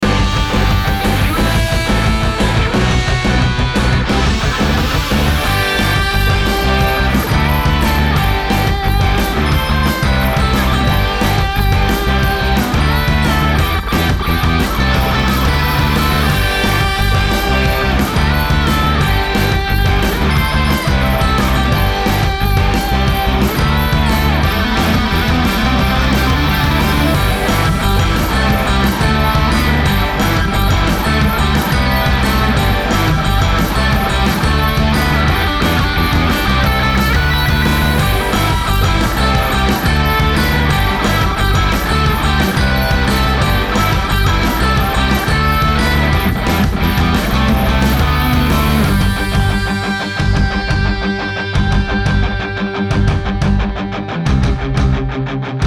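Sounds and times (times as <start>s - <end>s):
christmas rock music: 0.0s - 55.6s.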